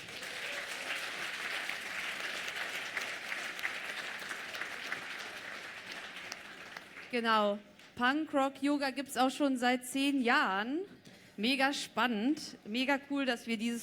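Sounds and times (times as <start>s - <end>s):
audience applause: 0.0s - 7.1s
speech: 7.1s - 13.8s.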